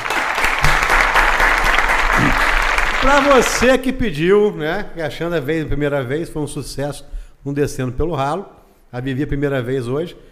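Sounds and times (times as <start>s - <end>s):
crowd applause: 0.0s - 3.7s
speech: 3.0s - 10.2s.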